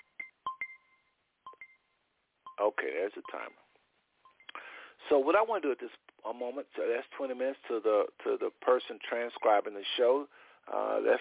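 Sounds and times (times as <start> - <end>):
timer going off: 0.0 - 1.8, 2.5 - 3.6
speech: 2.6 - 3.7, 5.1 - 11.1.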